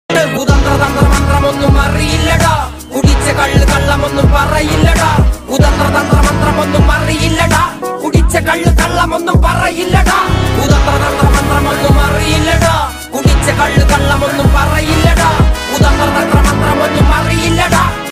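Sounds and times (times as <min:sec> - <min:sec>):
rap music: 0:00.1 - 0:18.1.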